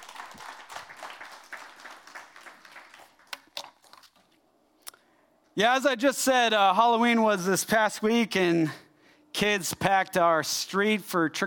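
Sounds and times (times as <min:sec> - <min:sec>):
audience applause: 0:00.0 - 0:03.6
speech: 0:05.6 - 0:08.8, 0:09.4 - 0:11.4.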